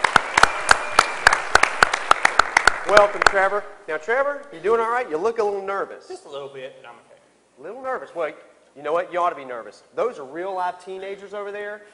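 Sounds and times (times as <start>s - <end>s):
audience hand claps welcoming a contestant: 0.0s - 3.5s
speech: 2.9s - 11.9s.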